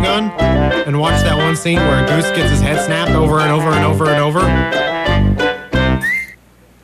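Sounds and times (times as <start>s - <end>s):
speech: 0.2s - 4.9s
slide whistle in theme music: 6.0s - 6.4s.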